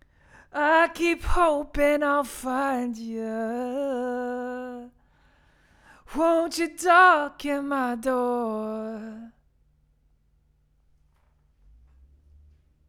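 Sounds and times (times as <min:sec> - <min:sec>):
vocals: 0:00.0 - 0:09.4.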